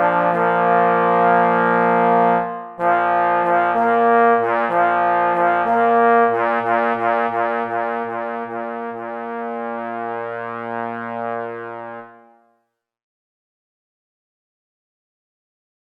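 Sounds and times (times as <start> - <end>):
fanfare for three hunting horns: 0.0 - 12.6.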